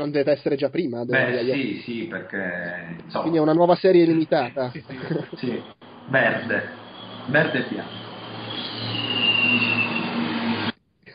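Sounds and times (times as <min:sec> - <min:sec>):
speech: 0:00.0 - 0:08.0
laughter: 0:04.2 - 0:05.7
bus passing by: 0:04.9 - 0:10.8.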